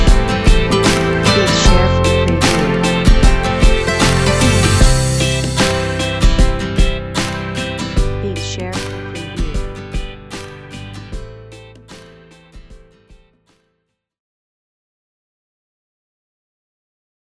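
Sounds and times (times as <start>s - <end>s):
pop music sample at 76 bpm: 0.0s - 11.9s.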